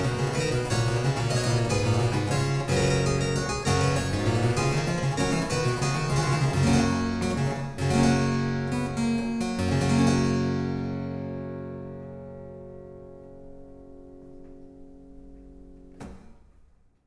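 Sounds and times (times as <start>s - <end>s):
harpsichords playing a volta dance: 0.0s - 11.4s.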